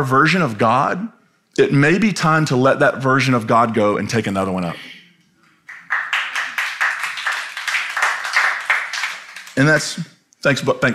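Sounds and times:
speech: 0.0s - 5.0s, 9.6s - 10.9s
audience clapping: 5.6s - 10.0s.

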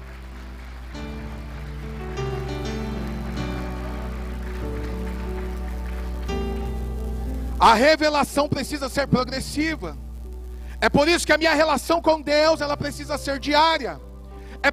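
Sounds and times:
audience applauding: 0.0s - 8.2s
sustained musical chords: 0.0s - 14.7s
speech: 7.6s - 10.0s, 10.8s - 14.0s.

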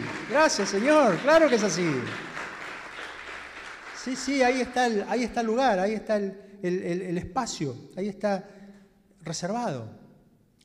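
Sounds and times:
audience applause: 0.0s - 4.9s
speech: 0.3s - 2.3s, 4.0s - 8.6s, 9.2s - 10.0s.

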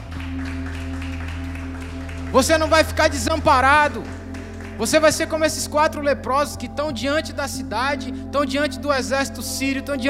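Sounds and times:
crowd applause: 0.0s - 5.4s
low droning tone: 0.0s - 10.0s
speech: 2.3s - 4.2s, 4.8s - 10.0s.

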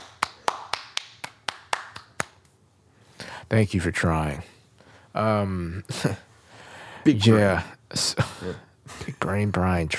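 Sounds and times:
single pair of hands clapping: 0.0s - 2.6s
speech: 3.5s - 4.5s, 5.2s - 6.3s, 7.0s - 9.9s.

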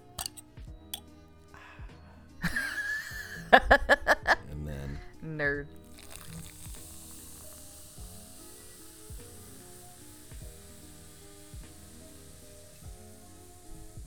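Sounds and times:
opened root beer cans fizzing: 0.0s - 1.0s, 5.7s - 14.0s
soft music: 0.0s - 14.0s
speech: 3.5s - 4.0s, 5.3s - 5.8s.

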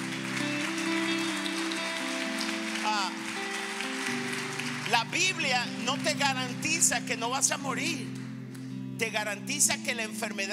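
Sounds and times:
audience applauding: 0.0s - 7.1s
speech: 4.9s - 8.2s, 9.0s - 10.5s.

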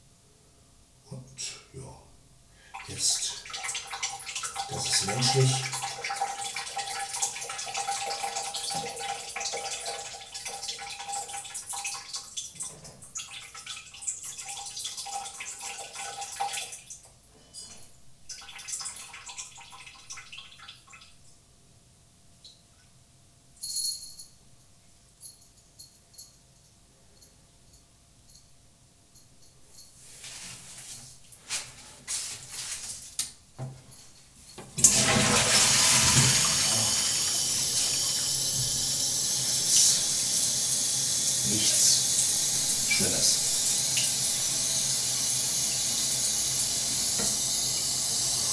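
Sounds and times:
speech: 1.4s - 1.6s, 2.9s - 3.4s, 4.7s - 5.8s
toilet tank refilling with running water: 2.8s - 16.8s, 34.7s - 48.5s
toilet flushing: 2.8s - 16.9s, 34.6s - 48.5s.

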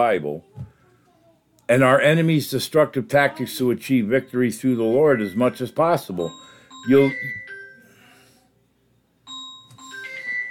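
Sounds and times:
speech: 0.0s - 0.6s, 1.7s - 7.4s
phone ringing: 4.1s - 7.8s, 9.3s - 10.4s.

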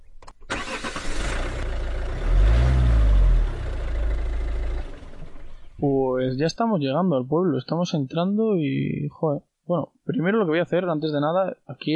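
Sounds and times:
vehicle engine starting, revving and driving off: 0.5s - 5.8s
speech: 5.8s - 11.9s.

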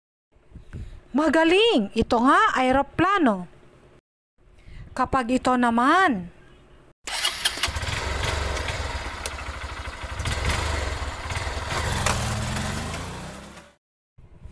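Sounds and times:
speech: 1.2s - 3.5s, 5.0s - 6.4s
motorized tricycle engine running: 7.1s - 13.8s.

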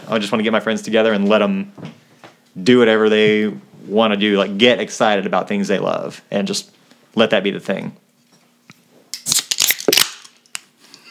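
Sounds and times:
speech: 0.1s - 2.0s, 2.6s - 8.0s
beer cans popping open: 9.2s - 10.7s.

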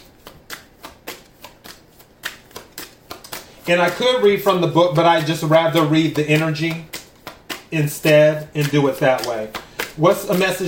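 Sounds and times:
tarot cards handled and drawn from a deck: 0.0s - 10.6s
speech: 3.7s - 6.9s, 7.7s - 10.6s.

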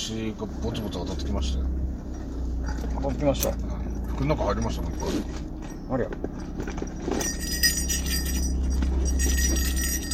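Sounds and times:
speech: 0.1s - 1.8s, 2.8s - 7.6s
bear bell jingling: 4.0s - 10.1s.

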